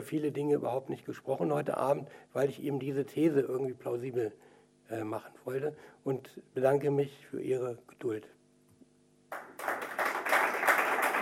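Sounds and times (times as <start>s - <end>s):
speech: 0.0s - 8.4s
audience applause: 9.3s - 11.2s.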